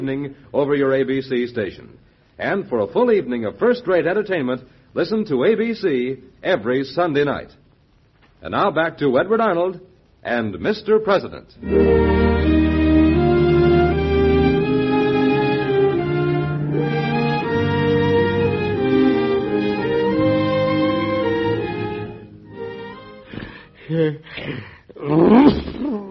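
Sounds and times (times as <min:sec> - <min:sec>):
speech: 0:00.0 - 0:07.6, 0:08.4 - 0:12.5
orchestral music: 0:11.6 - 0:23.7
people sneezing: 0:23.3 - 0:26.0.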